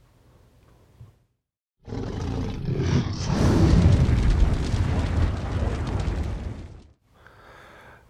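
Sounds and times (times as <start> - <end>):
fire-breathing dragon roar sound effect: 1.8 - 6.8.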